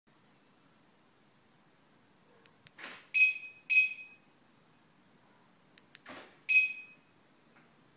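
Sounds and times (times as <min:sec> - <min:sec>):
Audi alarm chime: 0:03.2 - 0:04.3, 0:06.5 - 0:07.1.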